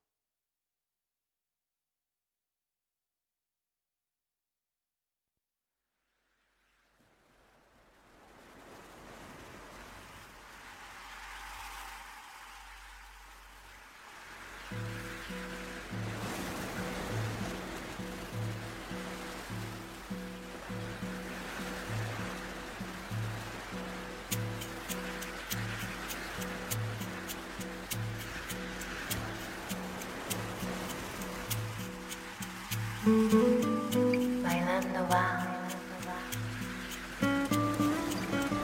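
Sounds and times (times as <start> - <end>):
ocean surf: 6.5 - 38.6
rhythmic song with thumping beat and bright plucked notes: 24.3 - 38.6.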